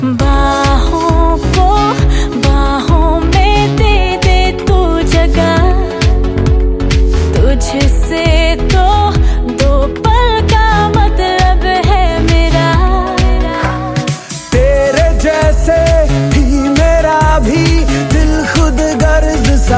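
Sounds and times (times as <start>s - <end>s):
romantic Hindi song ringtone: 0.0s - 19.7s.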